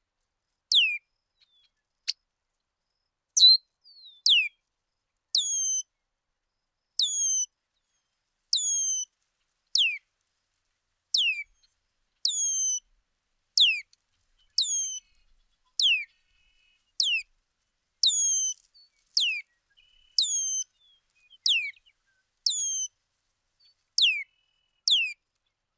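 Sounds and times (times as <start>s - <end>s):
bird song of high descending whistled phrases: 0.7s - 1.7s, 3.4s - 4.6s, 5.4s - 5.9s, 7.0s - 7.5s, 8.5s - 9.1s, 9.8s - 10.0s, 11.2s - 11.6s, 12.2s - 12.8s, 13.6s - 13.8s, 14.4s - 17.3s, 18.0s - 22.9s, 24.0s - 25.2s.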